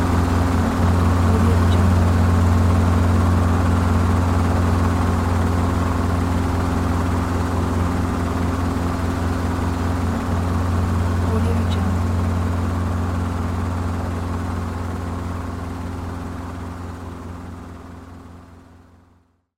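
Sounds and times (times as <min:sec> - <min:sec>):
helicopter: 0:00.0 - 0:19.3.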